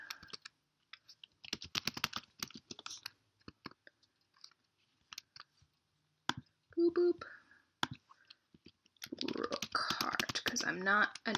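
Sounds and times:
typing on a computer keyboard: 0.0s - 5.5s, 8.6s - 11.3s
speech: 6.8s - 7.4s, 10.6s - 11.3s.

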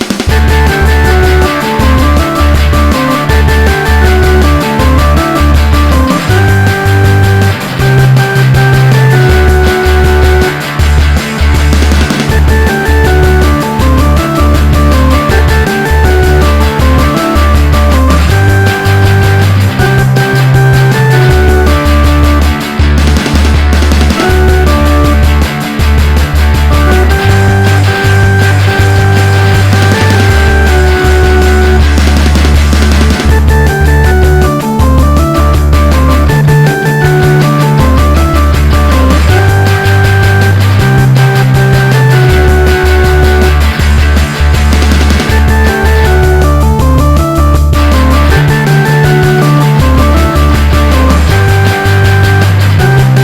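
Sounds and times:
guitar: 0.2s - 53.2s.

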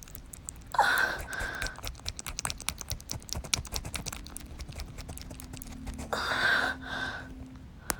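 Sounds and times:
wet sounds: 0.0s - 6.2s.

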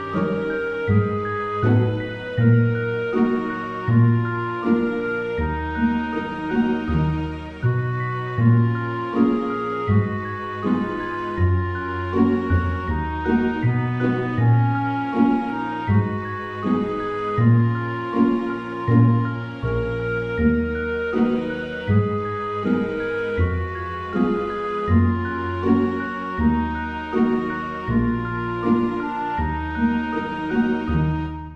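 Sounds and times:
cello music: 0.0s - 31.5s.

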